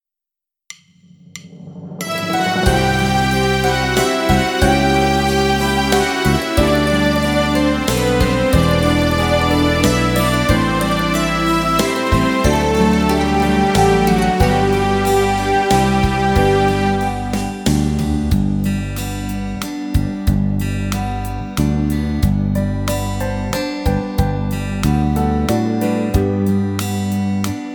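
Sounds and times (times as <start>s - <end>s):
slow waltz backing track: 2.1s - 19.6s, 20.5s - 27.6s.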